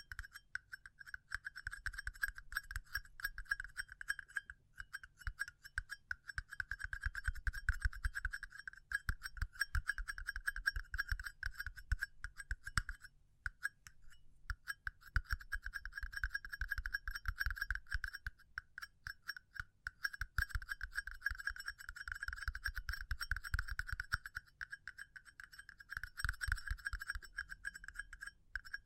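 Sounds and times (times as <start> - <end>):
continuous tapping: 0.0 - 28.8.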